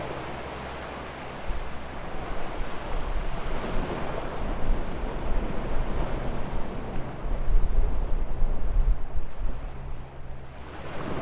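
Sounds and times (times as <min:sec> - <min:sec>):
low wind rumble: 0:00.0 - 0:11.2
waves washing: 0:00.0 - 0:11.2.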